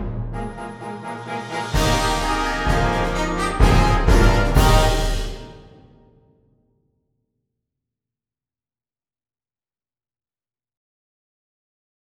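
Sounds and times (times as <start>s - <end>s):
fanfare: 0.0s - 6.1s.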